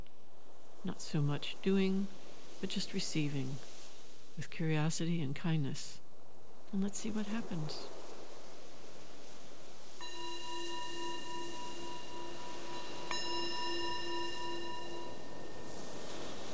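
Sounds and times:
speech: 0.8 - 3.7, 4.4 - 6.0, 6.7 - 8.0
meditation bell ringing: 10.0 - 16.5.

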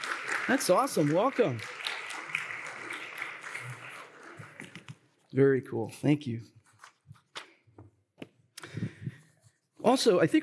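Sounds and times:
audience applauding guests' family members: 0.0 - 4.9
speech: 0.5 - 1.8, 5.3 - 6.5, 9.9 - 10.4.

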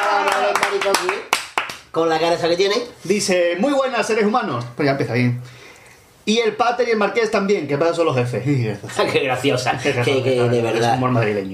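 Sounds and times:
sharp irregular hand claps: 0.0 - 1.9
speech: 0.7 - 1.3, 2.0 - 5.6, 6.3 - 11.5
laughter: 8.8 - 10.6.

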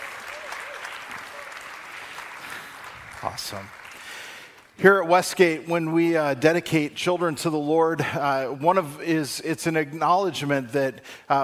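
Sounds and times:
church congregation applauding: 0.0 - 4.8
speech: 3.2 - 3.8, 4.8 - 11.4.

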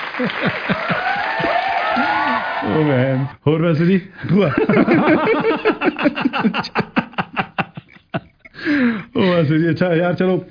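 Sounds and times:
laughter: 0.0 - 2.5, 4.2 - 9.7
applause for a professor: 0.0 - 2.9
speech: 0.2 - 1.6, 2.6 - 7.0, 8.6 - 10.5.

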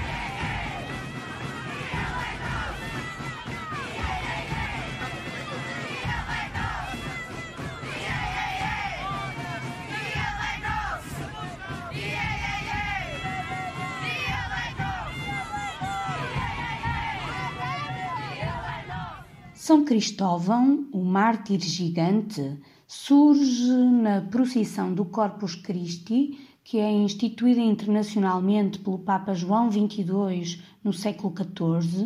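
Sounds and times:
crowd shouting and chanting at a street festival: 0.0 - 19.7
speech: 19.7 - 32.0.

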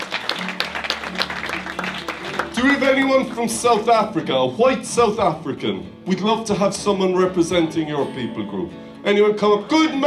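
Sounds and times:
audience round of applause: 0.0 - 3.3
speech: 2.8 - 10.0.

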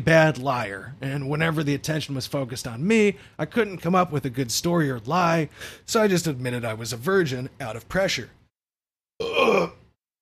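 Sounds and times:
speech: 0.0 - 8.4
big burp: 9.2 - 10.0.

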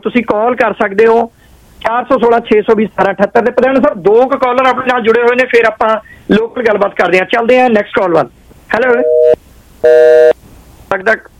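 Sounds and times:
speech: 0.0 - 9.2, 9.8 - 11.3
flat buzzing telephone tone after a dropped call: 8.9 - 10.4.

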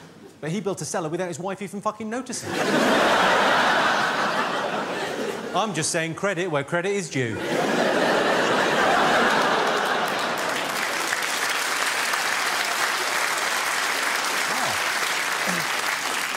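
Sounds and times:
speech: 0.4 - 3.1, 5.5 - 7.8
laughter: 2.4 - 5.8, 7.3 - 11.0, 14.4 - 16.2
audience applause after a dark joke at a stand-up comedy show: 7.8 - 16.3.

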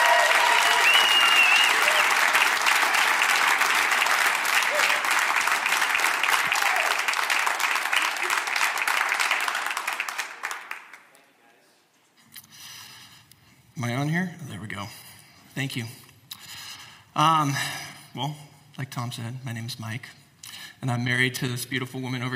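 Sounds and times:
scattered cheers and whoops: 0.0 - 2.5, 4.6 - 7.2
large crowd applauding: 0.0 - 11.2
speech: 15.6 - 16.0, 17.2 - 20.2, 20.8 - 22.3.

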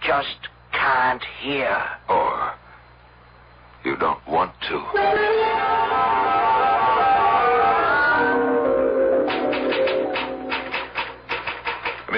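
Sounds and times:
speech: 0.1 - 2.5, 3.8 - 6.1
sustained tonal hum: 4.9 - 11.6
typewriter typing: 9.3 - 12.1.

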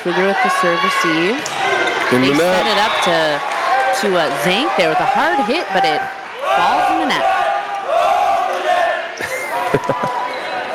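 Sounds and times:
speech: 0.0 - 7.4
student section crowd chanting and cheering at a high school volleyball match: 0.0 - 10.7
laughter: 2.0 - 3.4, 4.0 - 7.3, 9.1 - 10.7.

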